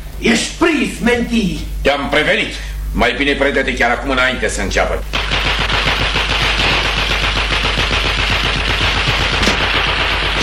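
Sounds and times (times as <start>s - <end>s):
speech: 0.2s - 5.2s
gunfire during police standoff: 5.1s - 10.4s.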